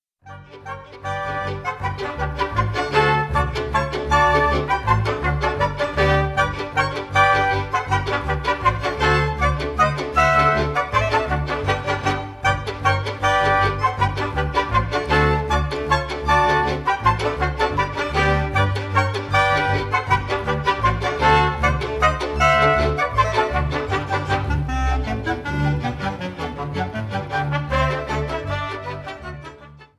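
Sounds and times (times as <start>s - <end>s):
galop dance music: 0.3s - 29.7s.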